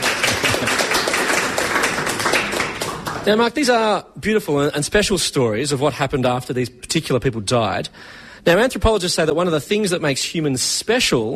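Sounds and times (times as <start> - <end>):
audience applause: 0.0 - 3.4
speech: 3.2 - 11.3.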